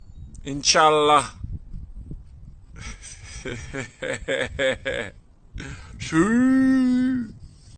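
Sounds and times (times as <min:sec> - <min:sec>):
person giggling: 0:02.8 - 0:05.8
person shouting: 0:06.1 - 0:07.3.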